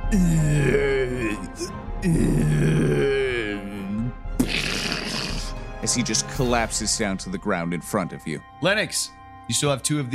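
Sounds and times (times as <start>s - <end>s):
speech: 0.1s - 3.4s, 5.8s - 10.1s
voice imitating a man choking: 0.1s - 5.6s.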